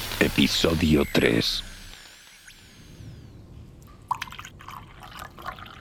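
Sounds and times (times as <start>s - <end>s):
speech: 0.4s - 1.7s
water poured into a cup or glass for drinking: 4.1s - 5.7s.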